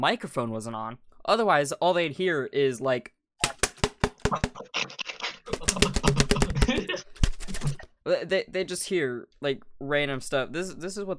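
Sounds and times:
speech: 0:00.0 - 0:03.2, 0:04.3 - 0:05.2, 0:08.0 - 0:11.1
plastic water bottle with a balloon stretched over it banging: 0:03.4 - 0:04.6, 0:05.5 - 0:07.8
laughter: 0:04.3 - 0:07.7.

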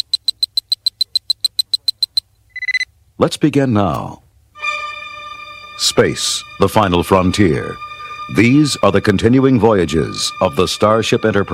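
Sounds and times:
sci-fi communicator beep: 0:00.0 - 0:02.9
speech: 0:03.2 - 0:04.2, 0:05.8 - 0:11.5.

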